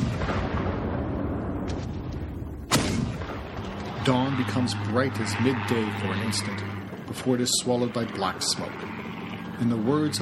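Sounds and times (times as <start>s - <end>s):
bombs and shells exploding: 0.0s - 4.2s
speech: 4.0s - 10.2s.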